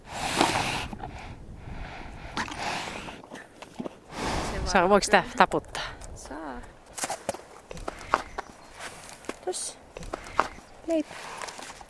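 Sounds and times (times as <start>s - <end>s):
horse snorting: 0.0s - 5.2s, 7.6s - 9.2s, 9.8s - 11.7s
speech: 4.7s - 5.9s, 10.9s - 11.2s.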